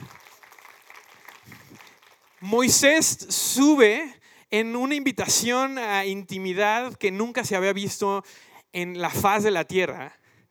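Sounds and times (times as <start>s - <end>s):
audience applause: 0.0s - 2.5s
speech: 2.4s - 10.2s.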